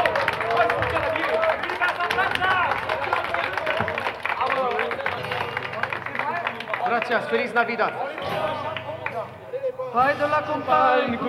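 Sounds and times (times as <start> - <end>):
audience applause for a Mexican duo at a touring show: 0.0 - 9.6
lively crowd voices and calls: 0.0 - 11.2
speech: 7.1 - 8.4, 10.0 - 11.2.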